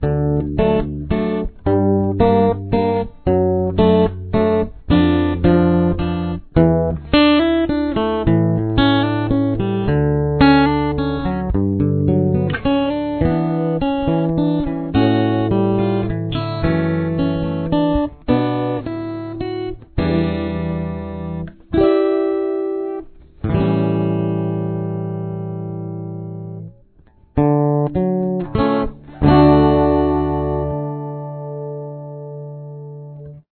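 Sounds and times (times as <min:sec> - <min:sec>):
guitar with chorus effect: 0:00.0 - 0:33.5.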